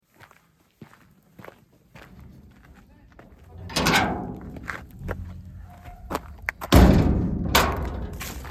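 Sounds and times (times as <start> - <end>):
exit gate noises: 2.1 - 8.4.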